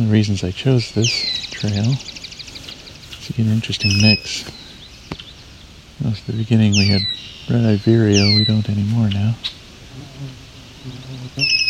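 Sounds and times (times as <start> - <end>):
speech: 0.0 - 2.2, 3.3 - 4.6, 6.0 - 11.6
swamp sparrows calling: 0.0 - 9.7, 10.7 - 11.6.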